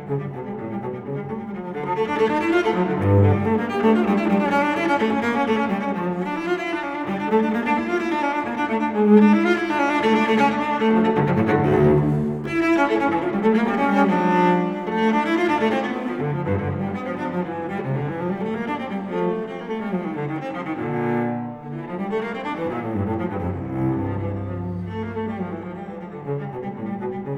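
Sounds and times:
solo cello playing a courante in D minor: 0.0 - 27.3.

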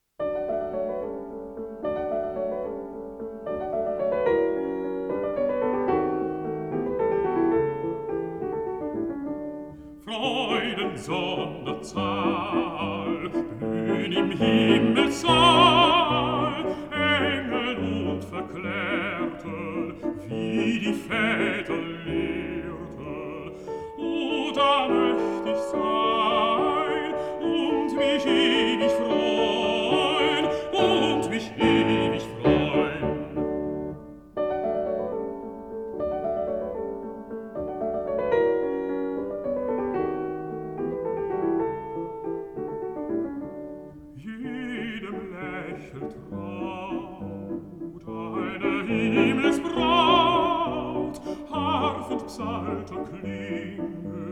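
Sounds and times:
piano: 0.0 - 54.3
person singing: 10.0 - 33.6, 44.2 - 54.3.

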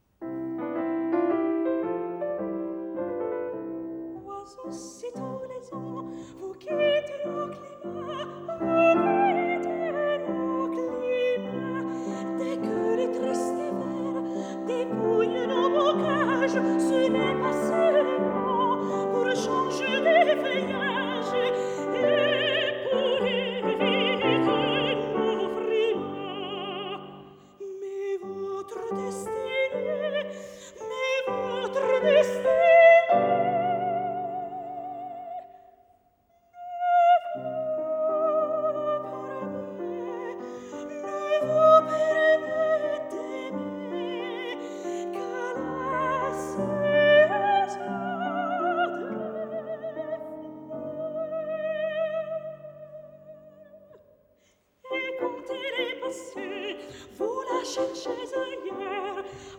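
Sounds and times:
piano: 0.0 - 59.5
person singing: 4.2 - 35.6, 36.6 - 54.0.

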